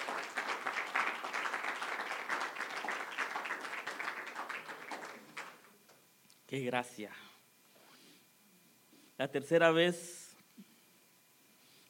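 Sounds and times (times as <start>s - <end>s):
audience applause: 0.0s - 5.7s
speech: 6.5s - 7.3s, 9.2s - 10.2s.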